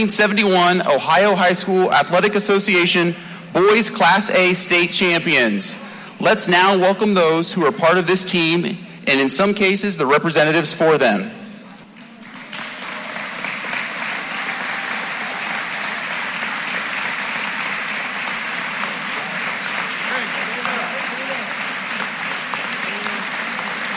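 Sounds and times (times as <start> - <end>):
speech: 0.0 - 11.4
large crowd standing ovation for Hall of Fame inductees walking onto the court: 12.1 - 23.9.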